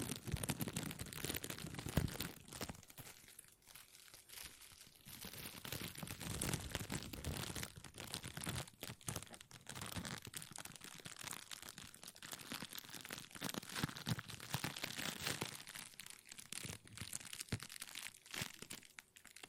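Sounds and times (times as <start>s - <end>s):
plastic crinkling: 0.0s - 19.4s.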